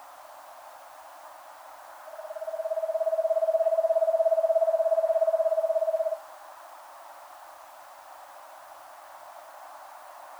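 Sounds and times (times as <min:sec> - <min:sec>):
Eastern screech owl delivering a rapid tremolo of hooting notes: 0:02.2 - 0:06.2.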